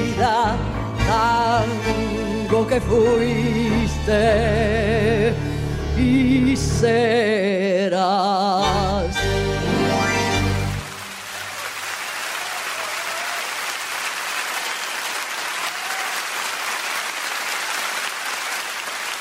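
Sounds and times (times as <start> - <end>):
speech: 0.2 - 9.4
audience applause at a live theatre concert: 10.8 - 19.2.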